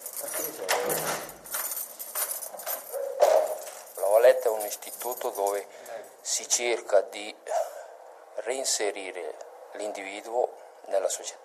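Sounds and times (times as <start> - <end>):
footsteps echoing in corridors: 0.0 - 5.7
keys jangling: 0.0 - 6.2
speech: 4.7 - 7.6, 8.4 - 11.4.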